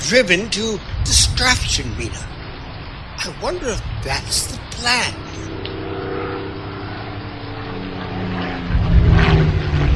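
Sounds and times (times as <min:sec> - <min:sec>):
speech: 0:00.1 - 0:02.4, 0:03.2 - 0:05.6
World War II Japanese fighter plane propeller engine: 0:04.0 - 0:09.9.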